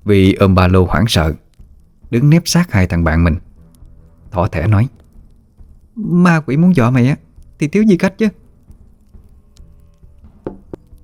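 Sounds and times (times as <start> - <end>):
speech: 0.1 - 1.4, 2.1 - 3.4, 4.3 - 5.0, 6.0 - 8.4
low steady rumble: 1.3 - 11.0
slow heavy knocking on a door from outside: 10.3 - 10.9.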